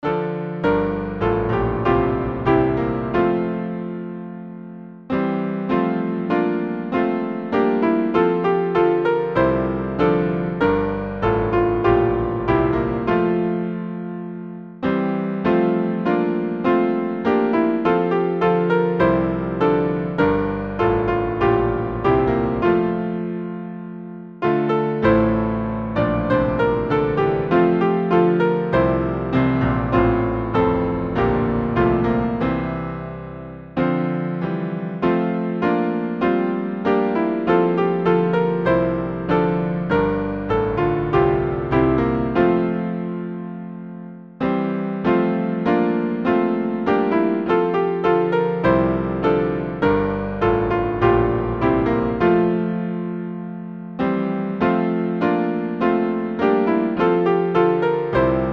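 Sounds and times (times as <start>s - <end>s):
hymn on piano: 0.0s - 58.5s.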